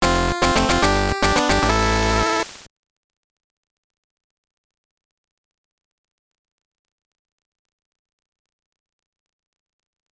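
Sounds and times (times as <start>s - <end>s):
jingle: 0.0s - 2.5s.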